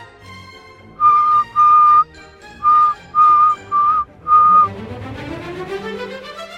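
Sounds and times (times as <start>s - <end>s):
soft whistling: 1.0s - 4.7s.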